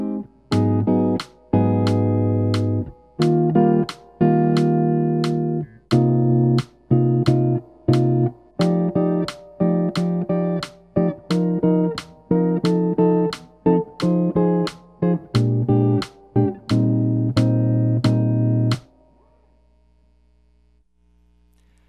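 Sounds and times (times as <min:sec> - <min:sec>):
jazz guitar: 0:00.0 - 0:19.4.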